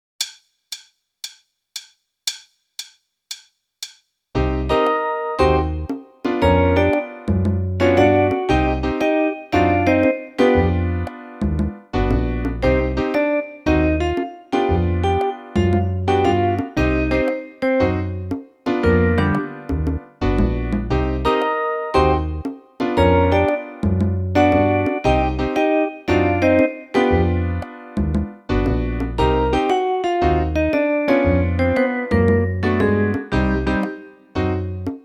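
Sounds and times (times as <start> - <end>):
swing jazz: 4.4 - 35.0.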